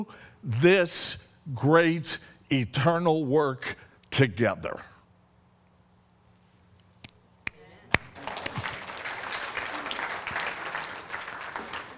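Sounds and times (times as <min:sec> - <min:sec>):
speech: 0:00.0 - 0:04.9
audience applause: 0:08.0 - 0:11.9.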